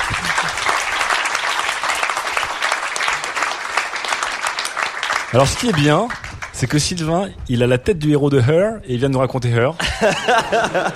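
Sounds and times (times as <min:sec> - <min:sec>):
laughter: 0:00.0 - 0:00.8, 0:09.8 - 0:10.9
audience applause: 0:00.0 - 0:06.9
speech: 0:05.3 - 0:10.9.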